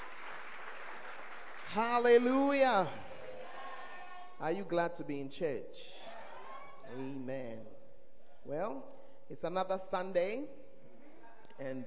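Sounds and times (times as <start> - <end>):
audience clapping: 0.0 - 3.6
speech: 1.7 - 3.0, 4.4 - 6.1, 6.9 - 7.8, 8.4 - 10.6, 11.6 - 11.8.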